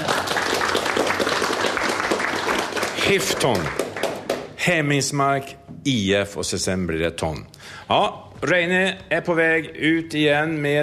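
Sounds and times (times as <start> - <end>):
crowd applause: 0.0 - 4.6
speech: 3.1 - 3.8, 4.6 - 10.8.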